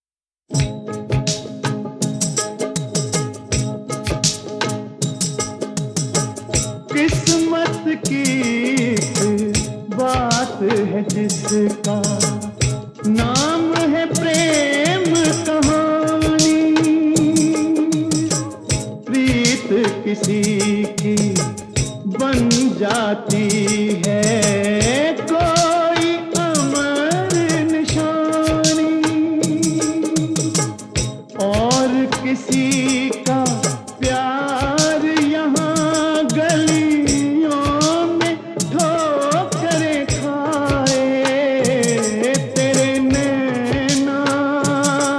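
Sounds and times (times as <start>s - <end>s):
male jhankar beat music: 0.3s - 45.1s.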